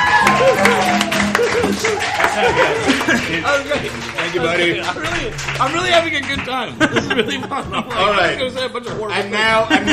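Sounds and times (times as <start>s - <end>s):
scattered whoops and shouting voices: 0.0s - 2.8s
crowd clapping and cheering: 0.0s - 7.2s
laughter: 0.4s - 4.1s, 6.6s - 8.3s, 9.6s - 9.9s
speech: 2.4s - 9.9s.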